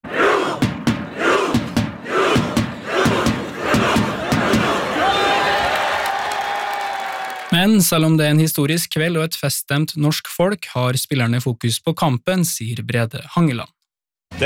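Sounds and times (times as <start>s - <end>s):
large outdoor crowd of football fans chanting: 0.0s - 7.5s
sharp regular claps or bangs: 0.4s - 7.6s
speech: 7.6s - 13.8s.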